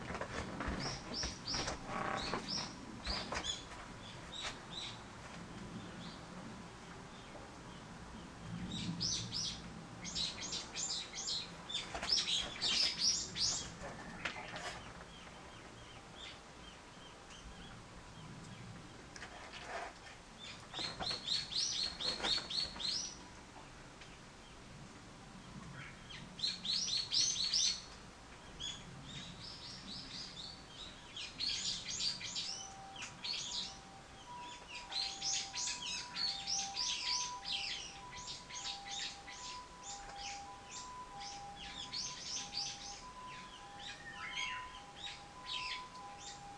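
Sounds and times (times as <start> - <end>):
bird: 0.1 - 6.2, 7.1 - 24.6, 25.5 - 46.5.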